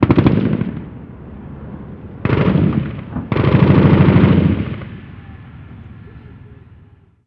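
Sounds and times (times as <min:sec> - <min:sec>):
US assault rifle gunshots: 0:00.0 - 0:00.9, 0:02.2 - 0:05.2.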